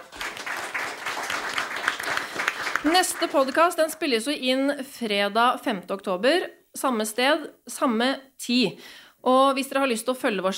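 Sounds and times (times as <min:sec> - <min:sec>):
audience applause: 0:00.0 - 0:03.8
speech: 0:02.8 - 0:10.5.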